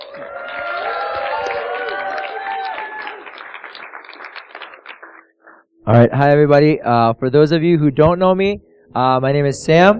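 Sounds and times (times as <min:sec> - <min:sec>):
Austin audience applause welcoming a speaker to the stage: 0:00.0 - 0:05.6
speech: 0:00.1 - 0:00.6, 0:05.9 - 0:09.9.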